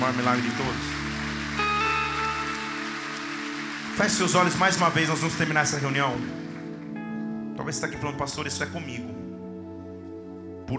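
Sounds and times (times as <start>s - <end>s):
church audience applauding: 0.0s - 7.0s
speech: 0.1s - 1.0s, 4.0s - 6.4s, 7.6s - 9.2s.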